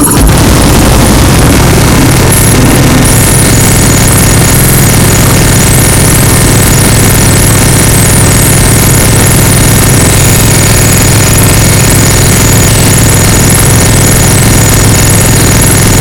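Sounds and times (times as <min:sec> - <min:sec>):
noise: 0:00.0 - 0:15.9.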